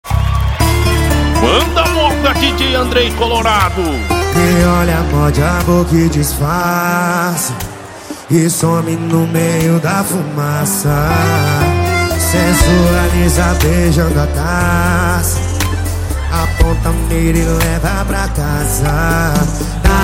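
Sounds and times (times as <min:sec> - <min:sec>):
sertanejo music: 0:00.2 - 0:20.0
rodeo announcers speaking: 0:01.4 - 0:04.5.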